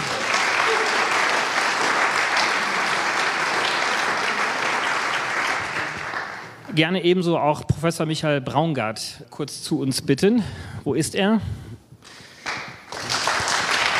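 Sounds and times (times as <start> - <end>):
audience applause: 0.0 - 6.6, 12.4 - 13.9
speech: 6.8 - 11.7.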